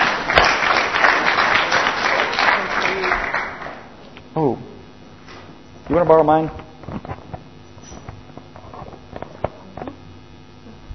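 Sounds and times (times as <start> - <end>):
audience applause: 0.0 - 4.0
speech: 5.9 - 6.6.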